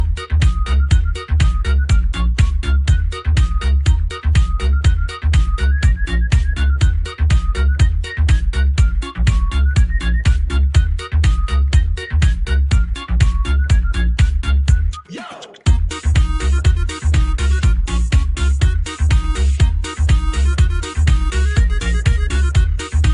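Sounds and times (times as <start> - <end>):
polka music: 0.0 - 23.1.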